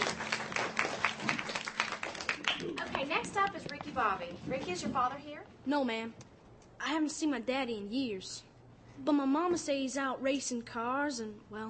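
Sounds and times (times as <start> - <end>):
faint audience applause at a live show: 0.0 - 3.5
low steady hum: 0.0 - 11.6
speech: 3.4 - 6.2, 6.8 - 11.6.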